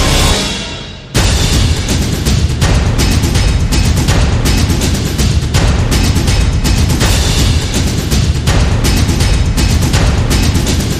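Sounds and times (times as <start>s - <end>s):
drums: 0.1s - 10.9s.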